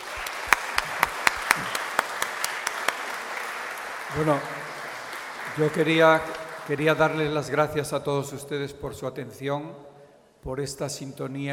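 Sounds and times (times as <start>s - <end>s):
audience applause: 0.0s - 7.5s
speech: 4.1s - 4.6s, 5.6s - 11.5s.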